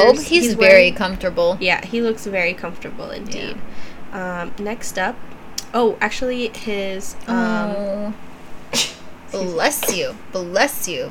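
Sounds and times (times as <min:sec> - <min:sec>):
speech: 0:00.0 - 0:11.0
person sneezing: 0:08.7 - 0:09.1.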